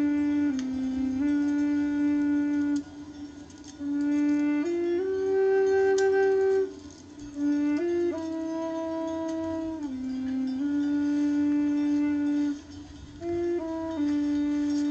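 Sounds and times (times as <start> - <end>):
tenor recorder improvisation: 0.0 - 14.9.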